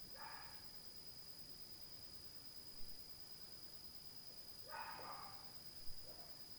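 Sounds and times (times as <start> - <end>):
dog barking faintly at night: 0.1 - 0.7, 4.7 - 6.4.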